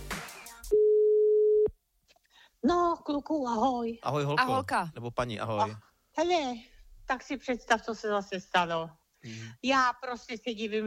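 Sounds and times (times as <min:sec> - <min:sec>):
telephone line tone after a number is dialed: 0:00.7 - 0:01.7
speech: 0:02.6 - 0:10.8.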